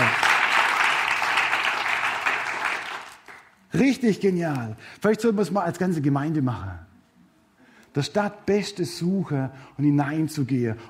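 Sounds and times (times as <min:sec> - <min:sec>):
audience applauding: 0:00.0 - 0:03.6
speech: 0:03.8 - 0:06.9, 0:07.9 - 0:10.8.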